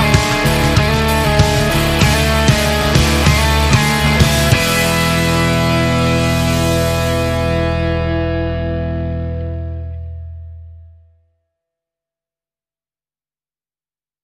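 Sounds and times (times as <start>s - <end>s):
rock jingle: 0.0s - 10.7s.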